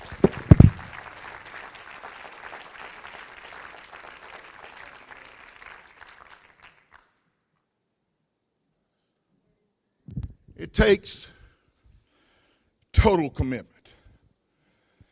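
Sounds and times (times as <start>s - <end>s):
applause: 0.0s - 7.3s
speech: 10.6s - 11.3s, 13.0s - 13.7s.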